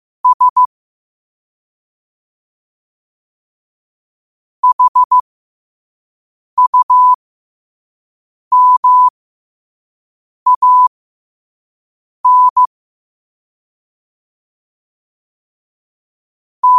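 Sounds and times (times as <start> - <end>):
morse code at 5 wpm: 0.2 - 0.7, 4.6 - 5.2, 6.6 - 7.2, 8.5 - 9.1, 10.5 - 10.9, 12.2 - 12.7.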